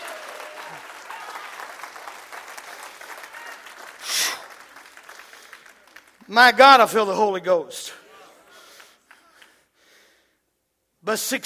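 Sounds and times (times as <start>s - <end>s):
cheering and whooping: 0.0s - 4.0s
audience clapping hands in praise: 0.0s - 7.1s, 8.5s - 9.8s
speech: 6.3s - 8.0s, 11.1s - 11.4s.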